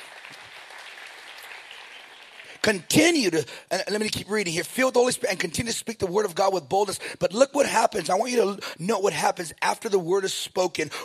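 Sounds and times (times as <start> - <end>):
audience clapping: 0.0 - 2.8
speech: 2.6 - 11.0.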